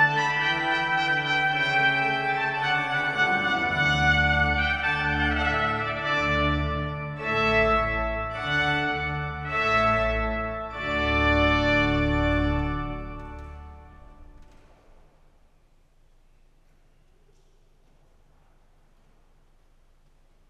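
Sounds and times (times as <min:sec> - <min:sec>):
overture music: 0:00.0 - 0:14.8.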